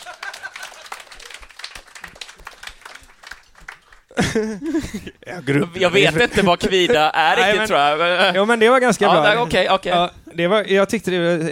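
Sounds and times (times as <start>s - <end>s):
laughter: 0.0s - 1.5s, 4.1s - 9.8s
applause: 0.0s - 4.2s
speech: 4.2s - 11.4s.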